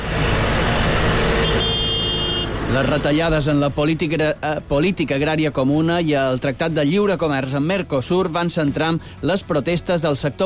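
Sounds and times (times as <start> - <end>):
protesting tractors honking on roads: 0.0 - 4.0
speech: 2.7 - 10.4.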